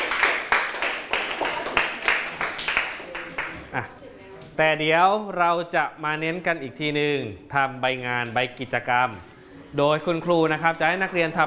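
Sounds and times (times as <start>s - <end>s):
students clapping: 0.0s - 3.6s
speech: 3.7s - 4.0s, 4.6s - 11.4s.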